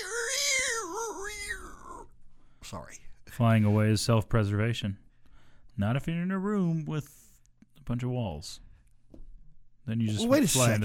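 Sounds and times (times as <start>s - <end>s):
person imitating a screech owl call: 0.0s - 2.1s
speech: 2.7s - 5.0s, 5.8s - 7.2s, 7.9s - 8.6s, 9.8s - 10.8s.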